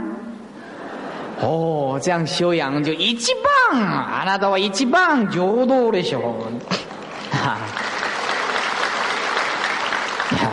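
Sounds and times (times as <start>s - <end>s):
speech: 1.4s - 6.8s
audience applause: 6.7s - 10.5s.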